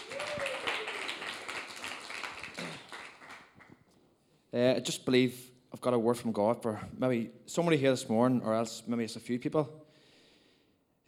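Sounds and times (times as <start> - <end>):
audience round of applause: 0.0 - 3.6
speech: 4.5 - 9.9.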